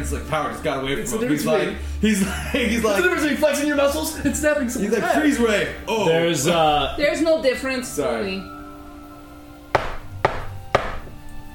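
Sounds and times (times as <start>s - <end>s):
speech: 0.0s - 8.6s
laughter: 2.1s - 5.4s
knocking on a door: 9.8s - 11.2s.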